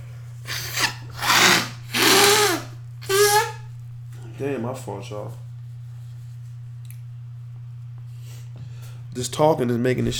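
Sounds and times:
person blowing stuffed-up nose: 0.4 - 3.6
speech: 4.4 - 5.5, 9.2 - 10.1.

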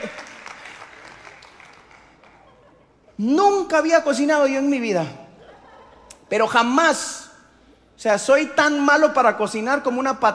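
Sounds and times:
laughter: 0.0 - 0.5, 2.2 - 3.2, 5.3 - 6.3
crowd applauding: 0.0 - 2.7
speech: 3.2 - 5.2, 6.3 - 7.2, 8.0 - 10.3.

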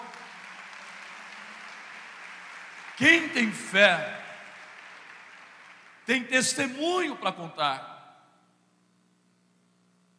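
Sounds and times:
audience applauding: 0.0 - 6.8
speech: 3.0 - 4.2, 6.1 - 7.9.

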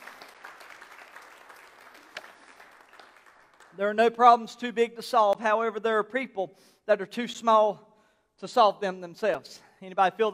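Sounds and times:
audience clapping hands in praise: 0.0 - 4.0
speech: 3.8 - 10.3.

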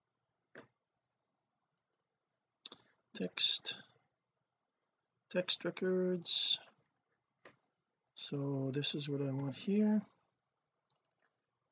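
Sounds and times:
speech: 3.2 - 3.9, 5.3 - 6.7, 8.2 - 10.1
computer mouse clicking: 10.9 - 11.3.

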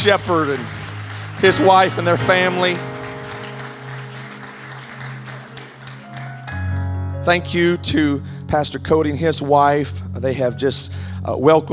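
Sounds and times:
speech: 0.0 - 0.8, 1.4 - 2.9, 7.2 - 11.7
audience clapping in appreciation of a pastor and his family: 0.0 - 6.8
sustained low musical tones: 0.0 - 11.7.

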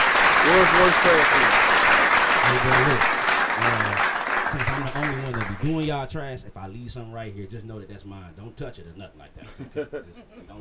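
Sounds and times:
audience clapping: 0.0 - 6.0
speech: 0.5 - 1.8, 2.4 - 10.6.

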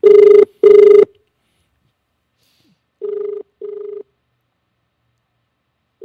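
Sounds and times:
telephone ringing as radio show calls a councilor: 0.0 - 1.1, 3.0 - 4.1.

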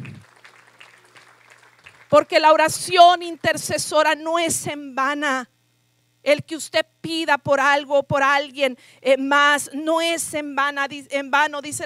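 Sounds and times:
applause: 0.0 - 2.9
speech: 2.1 - 5.5, 6.2 - 11.8.

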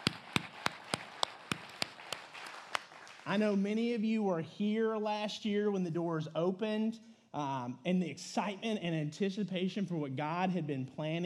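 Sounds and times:
audience applause: 0.0 - 3.5
speech: 3.2 - 11.2.

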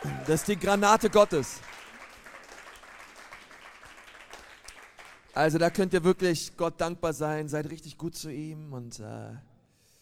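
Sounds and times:
crowd applause: 0.0 - 5.3
speech: 0.3 - 1.7, 5.4 - 9.5.

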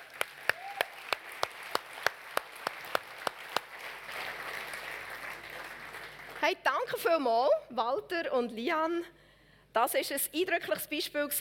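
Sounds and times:
audience applause: 0.0 - 6.4
speech: 6.4 - 9.2, 9.8 - 11.3.

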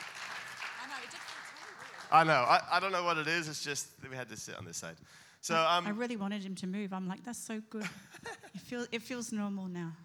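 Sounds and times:
audience applause welcoming a guest on stage: 0.0 - 3.0
speech: 1.0 - 10.0.

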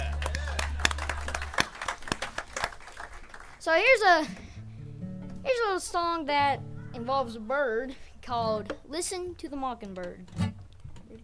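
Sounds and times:
audience applause: 0.0 - 3.8
speech: 3.6 - 4.4, 5.5 - 10.4.

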